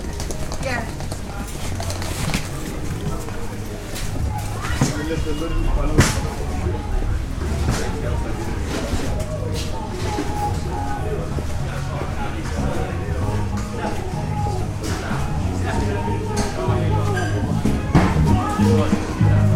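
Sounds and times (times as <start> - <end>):
steady murmur of many voices talking at once: 0.0 - 19.5
constant low rumble: 5.1 - 9.3.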